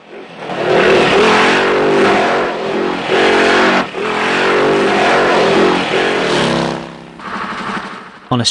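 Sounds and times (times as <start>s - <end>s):
engines of two black and white police squad cars chasing motorbikes and a bus: 0.0s - 8.4s.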